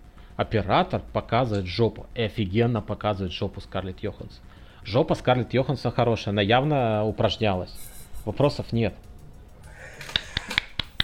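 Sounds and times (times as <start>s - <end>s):
speech: 0.4s - 9.1s
finger snapping as applause: 10.0s - 11.0s.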